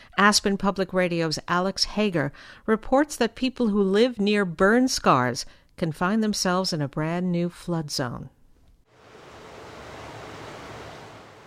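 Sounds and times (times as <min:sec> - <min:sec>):
speech: 0:00.2 - 0:08.4
creek running through a backyard: 0:08.9 - 0:11.4.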